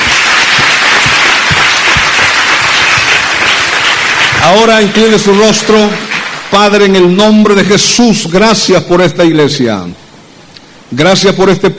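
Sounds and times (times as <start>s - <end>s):
audience applause: 0.0s - 6.8s
speech: 4.5s - 10.0s, 10.9s - 11.7s.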